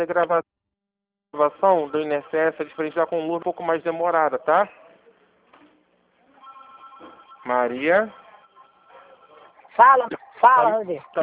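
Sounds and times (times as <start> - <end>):
speech: 0.0 - 0.6, 1.3 - 4.8, 7.0 - 8.2, 9.8 - 11.2
telephone ringing: 6.4 - 11.2.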